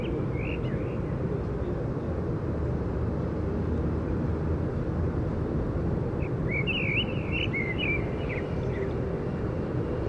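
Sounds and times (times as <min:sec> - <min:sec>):
bird chirping: 0:00.0 - 0:01.1, 0:06.2 - 0:09.0
traffic rumble south of Holland Spoor rail station, Den Haag: 0:00.0 - 0:10.0.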